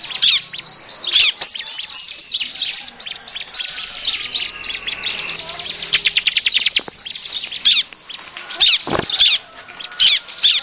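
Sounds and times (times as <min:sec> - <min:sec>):
prinia singing: 0:00.0 - 0:10.6.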